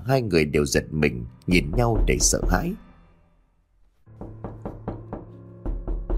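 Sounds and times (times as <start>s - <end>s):
speech: 0.0s - 2.8s
knocking on a door: 1.5s - 2.8s, 4.1s - 6.1s.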